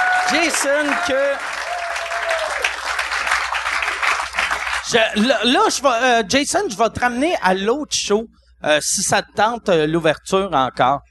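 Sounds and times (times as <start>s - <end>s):
applause: 0.0s - 5.5s
speech: 0.3s - 1.6s, 4.9s - 11.0s.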